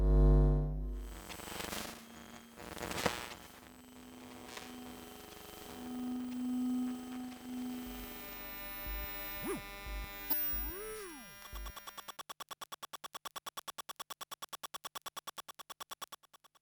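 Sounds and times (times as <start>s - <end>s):
electromagnetic field picked up by a microphone: 0.1s - 12.3s.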